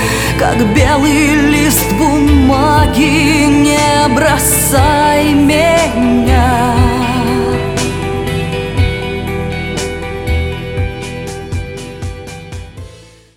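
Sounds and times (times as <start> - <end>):
vocals being mixed: 0.0 - 9.8.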